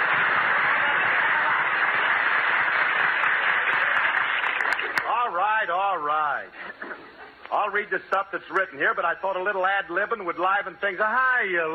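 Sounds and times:
large audience applause with an old broadcast quality: 0.0 - 5.1
speech: 6.2 - 11.7
laughter: 6.4 - 7.9.

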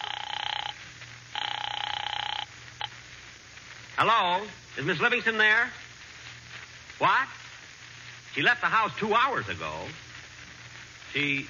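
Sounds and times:
telephone ringing: 0.0 - 2.9
speech: 4.0 - 5.8, 7.0 - 7.4, 8.4 - 10.0, 11.1 - 11.4.

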